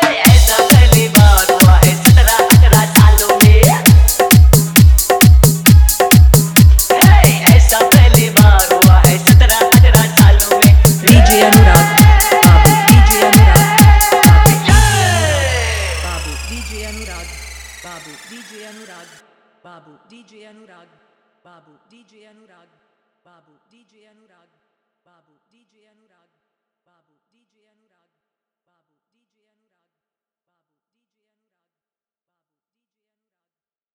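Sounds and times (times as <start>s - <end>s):
dholak with hard bass: 0.0s - 18.6s.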